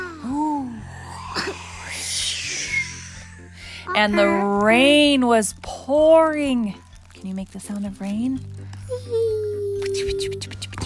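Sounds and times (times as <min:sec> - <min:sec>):
child imitating howling wind: 0:00.0 - 0:04.5
speech: 0:04.0 - 0:09.2, 0:10.0 - 0:10.7.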